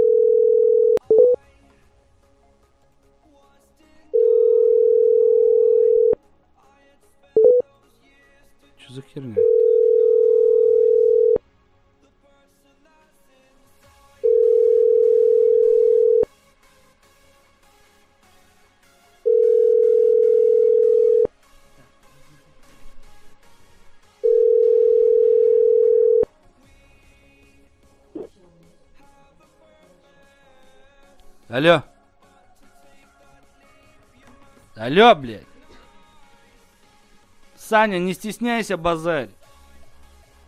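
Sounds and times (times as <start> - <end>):
telephone ringback tone: 0.0 - 1.4, 4.2 - 6.2, 7.4 - 7.6, 9.4 - 11.4, 14.2 - 16.3, 19.3 - 21.3, 24.2 - 26.3
speech: 9.2 - 9.7, 31.6 - 31.9, 34.9 - 35.5, 37.7 - 39.4.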